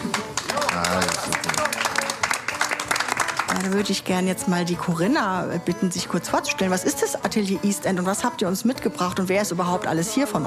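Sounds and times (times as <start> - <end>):
audience applause: 0.0 - 3.8
speech: 3.6 - 10.4.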